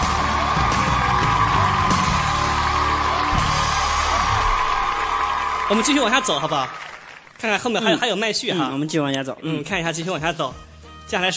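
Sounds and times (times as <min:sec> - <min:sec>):
whoops and cheers: 0:00.0 - 0:07.0
audience applause: 0:00.0 - 0:07.9
speech: 0:05.7 - 0:06.8, 0:07.4 - 0:11.3.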